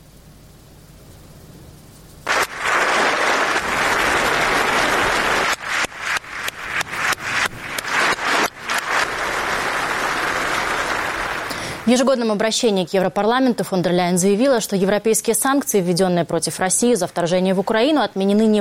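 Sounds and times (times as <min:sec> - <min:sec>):
standing ovation applause in parliament: 0:02.3 - 0:11.9
speech: 0:11.9 - 0:18.5.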